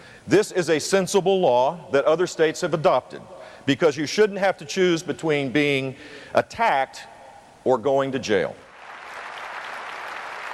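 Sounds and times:
speech: 0:00.2 - 0:08.6
NRA crowd cheering and applause: 0:08.8 - 0:10.5.

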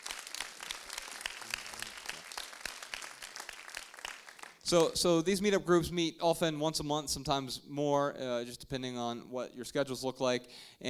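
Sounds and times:
audience applause: 0:00.0 - 0:04.7
speech: 0:04.7 - 0:10.8.

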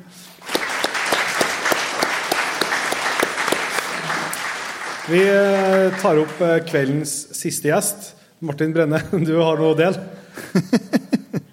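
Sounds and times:
live audience applause: 0:00.3 - 0:07.1
speech: 0:05.1 - 0:11.0
laughter: 0:08.9 - 0:11.5.

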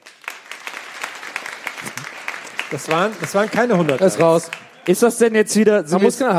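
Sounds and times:
live audience applause: 0:00.0 - 0:05.6
speech: 0:02.7 - 0:06.3.

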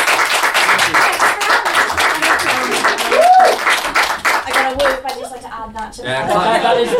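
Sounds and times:
audience applause: 0:00.0 - 0:05.3
whoops and cheers: 0:03.0 - 0:03.7
laughter: 0:06.0 - 0:06.9.

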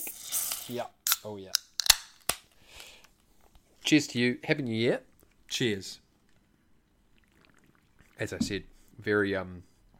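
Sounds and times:
drink cans cracking open: 0:00.0 - 0:03.0
speech: 0:00.7 - 0:01.6, 0:03.9 - 0:06.0, 0:08.2 - 0:09.7.

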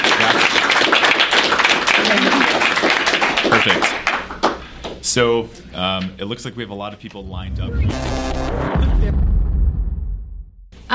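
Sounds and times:
audience applause: 0:00.0 - 0:05.0
speech: 0:03.6 - 0:04.0, 0:05.1 - 0:09.3.

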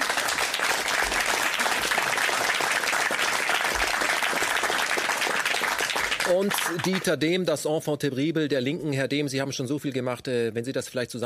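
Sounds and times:
audience applause: 0:00.0 - 0:07.1
speech: 0:06.3 - 0:11.2.

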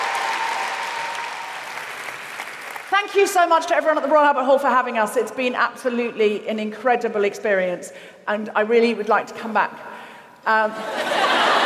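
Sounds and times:
large crowd cheering: 0:00.0 - 0:02.6
large crowd applauding: 0:00.0 - 0:03.0
speech: 0:03.0 - 0:11.2
laughter: 0:10.7 - 0:11.6.

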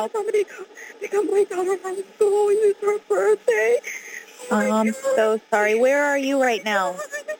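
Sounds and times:
speech: 0:00.0 - 0:07.2
police radio traffic in background: 0:04.5 - 0:05.2.

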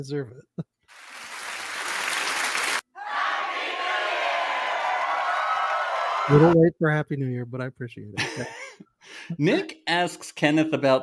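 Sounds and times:
speech: 0:00.0 - 0:00.6, 0:06.3 - 0:11.0
crowd applause: 0:00.9 - 0:06.5.

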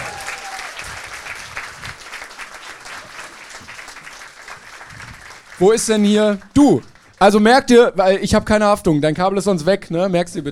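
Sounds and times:
audience applause: 0:00.0 - 0:07.2
speech: 0:05.6 - 0:10.5.

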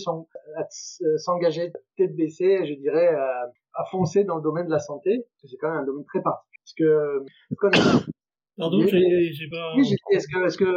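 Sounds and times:
speech: 0:00.0 - 0:10.7
harsh cough: 0:07.6 - 0:08.2.

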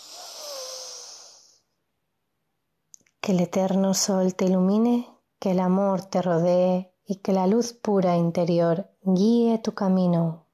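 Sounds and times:
deep inhale before singing: 0:00.0 - 0:01.8
speech: 0:03.3 - 0:10.4.

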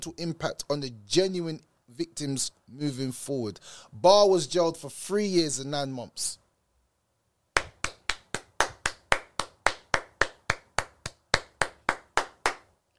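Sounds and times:
speech: 0:00.0 - 0:06.4
single person clapping hands: 0:07.6 - 0:12.7.

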